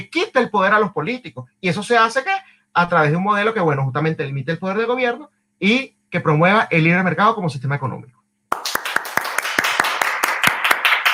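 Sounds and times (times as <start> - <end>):
speech: 0.0 - 8.2
crisp hand claps as applause for a guest: 8.5 - 11.1.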